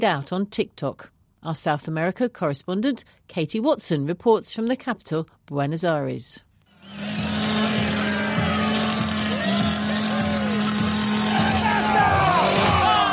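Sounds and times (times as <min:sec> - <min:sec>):
speech: 0:00.0 - 0:07.2
chainsaw engine droning: 0:06.7 - 0:13.1
crowd voices: 0:07.2 - 0:13.1.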